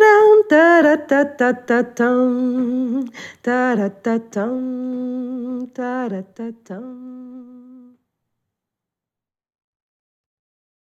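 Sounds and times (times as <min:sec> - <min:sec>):
woman singing: 0:00.0 - 0:08.0.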